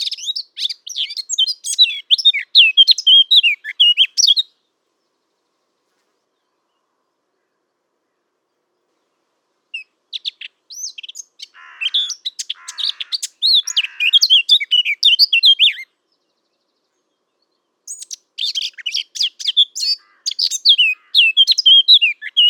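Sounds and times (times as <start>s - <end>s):
Eurasian blackcap singing: 0.0s - 4.5s, 9.8s - 15.9s, 17.4s - 22.4s.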